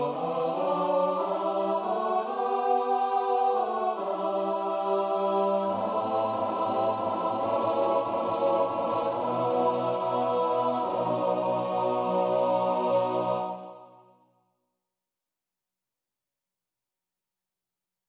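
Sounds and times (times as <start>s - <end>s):
TTBB male choir singing: 0.0s - 14.0s.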